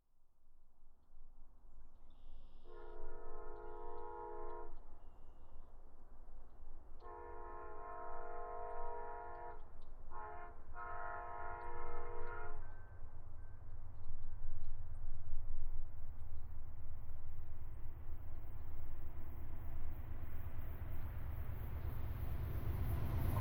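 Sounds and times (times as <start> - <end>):
distant train horn: 2.6 - 5.0, 7.0 - 13.7
fast passenger train passing: 2.6 - 23.3.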